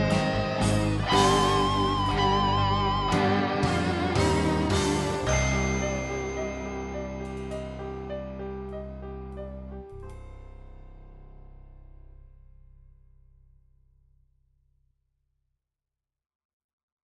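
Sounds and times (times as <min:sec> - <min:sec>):
guitar: 0:00.0 - 0:11.6.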